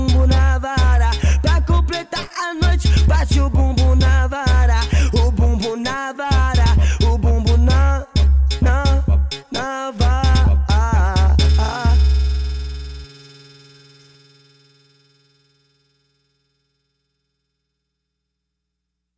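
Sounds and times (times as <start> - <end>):
rhythmic music: 0.0 - 14.4.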